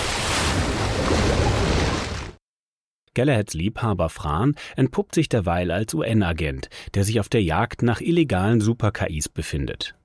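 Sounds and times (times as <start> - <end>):
churning water and surf: 0.0 - 2.4
speech: 3.2 - 10.0.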